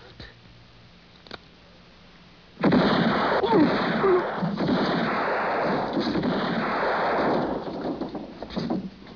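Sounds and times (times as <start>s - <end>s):
gunshot: 2.6s - 8.9s.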